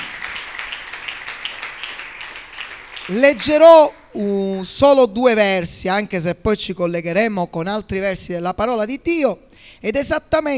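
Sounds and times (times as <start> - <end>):
congregation clapping in church: 0.0 - 4.1
speech: 3.1 - 10.5.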